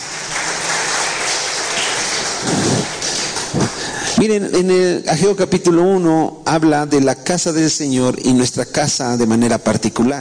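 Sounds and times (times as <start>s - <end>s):
audience clapping: 0.0s - 4.3s
speech: 4.2s - 10.2s.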